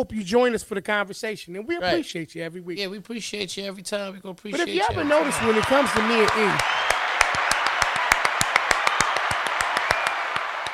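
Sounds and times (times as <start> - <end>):
speech: 0.0 - 7.0
two hosts clapping their hands together in unison: 4.6 - 10.7.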